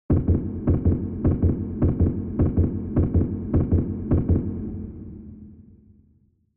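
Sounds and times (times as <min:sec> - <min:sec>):
fast heartbeat with reverb: 0:00.1 - 0:04.9.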